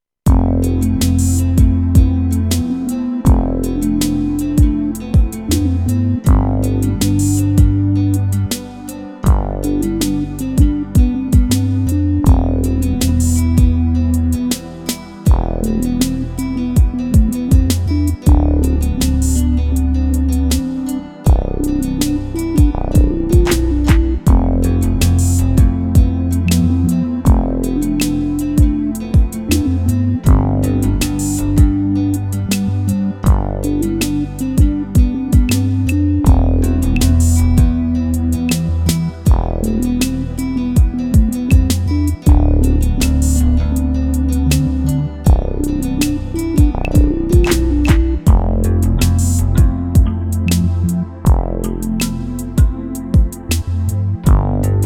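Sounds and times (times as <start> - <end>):
QY100 chill music: 0.3 - 54.8.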